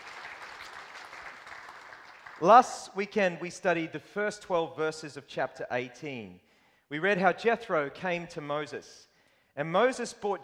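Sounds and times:
audience applause: 0.0s - 2.5s
speech: 2.4s - 10.4s.

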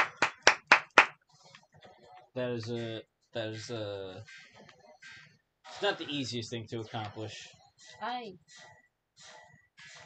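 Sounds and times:
generic applause sound effect: 0.0s - 1.2s
speech: 2.4s - 4.6s, 5.8s - 9.3s.

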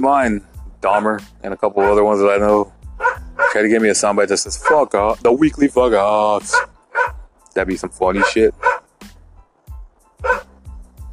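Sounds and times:
speech: 0.0s - 2.8s, 3.6s - 6.7s, 7.6s - 8.6s
dog barking: 3.0s - 3.7s, 4.6s - 4.9s, 6.5s - 7.2s, 8.2s - 8.8s, 10.2s - 10.5s.

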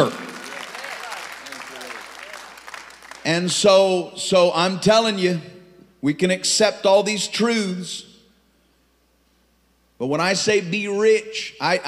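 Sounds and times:
audience clapping hands: 0.0s - 3.4s
speech: 3.3s - 8.1s, 10.0s - 11.8s.

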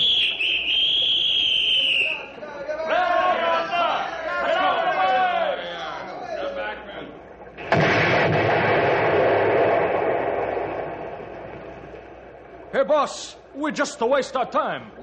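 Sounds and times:
high warning whistle: 0.0s - 2.4s
people shouting: 2.8s - 5.6s
dynamite blast blowing apart a log pile: 7.6s - 12.7s
speech: 12.8s - 15.0s.

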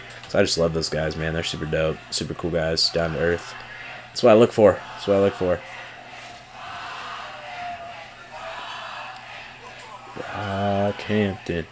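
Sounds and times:
speech: 0.3s - 5.8s, 11.1s - 11.7s
arena crowd cheering and screaming: 2.9s - 11.7s.

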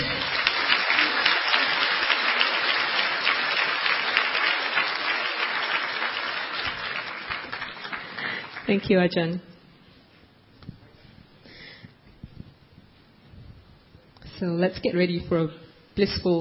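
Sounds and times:
warm round of applause: 0.0s - 8.8s
speech: 8.7s - 9.5s, 14.4s - 16.3s.

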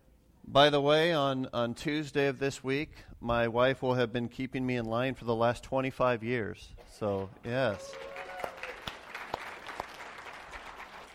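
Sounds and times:
speech: 0.5s - 8.2s
audience applause: 7.6s - 11.1s.

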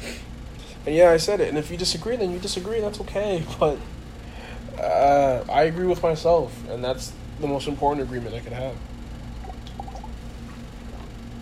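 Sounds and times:
steady low hum: 0.6s - 11.4s
speech: 0.8s - 4.0s, 4.8s - 8.9s
person drinking water: 9.4s - 11.2s.

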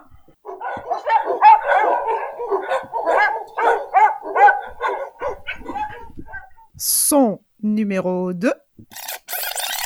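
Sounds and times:
dogs barking at bay: 0.3s - 6.7s
speech: 7.7s - 8.6s.

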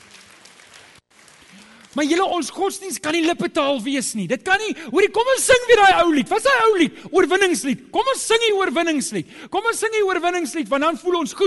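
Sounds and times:
audience hand clapping: 0.0s - 2.4s
speech: 2.0s - 11.4s.

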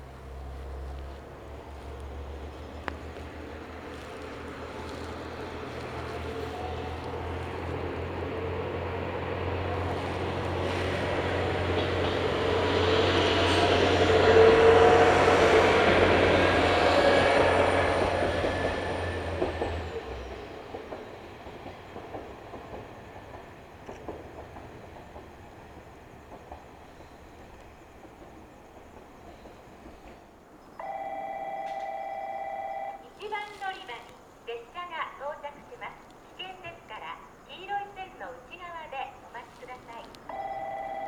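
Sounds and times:
train rumbling past on the Karatsu and Nagasaki Main Line: 0.0s - 41.0s
person speaking: 33.0s - 40.2s
station chime: 40.3s - 41.0s.

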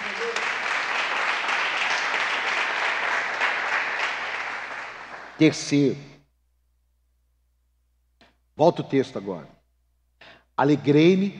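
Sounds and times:
audience applause: 0.0s - 5.5s
speech: 5.4s - 6.1s, 8.6s - 9.6s, 10.6s - 11.3s.

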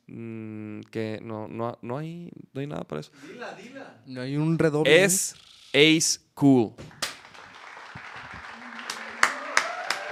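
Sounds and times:
speech: 0.1s - 7.0s
audience clapping: 6.8s - 10.1s.

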